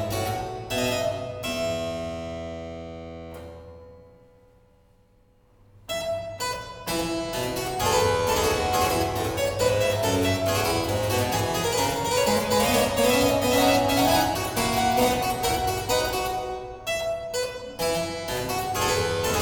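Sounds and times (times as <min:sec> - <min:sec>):
harpsichord playing a fugue: 0:00.0 - 0:03.8, 0:05.9 - 0:19.4
organ playing a fugue: 0:07.3 - 0:16.6.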